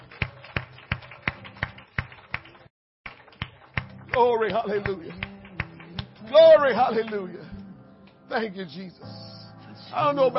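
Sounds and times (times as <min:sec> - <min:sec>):
audience clapping hands: 0:00.0 - 0:07.4
speech: 0:04.2 - 0:05.3, 0:06.3 - 0:07.6, 0:08.3 - 0:09.3, 0:09.9 - 0:10.3.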